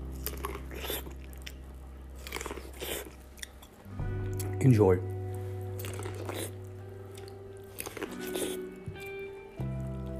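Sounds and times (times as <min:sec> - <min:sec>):
biting and chewing corn on the cob: 0:00.0 - 0:04.5, 0:05.7 - 0:09.2
speech: 0:04.6 - 0:05.1.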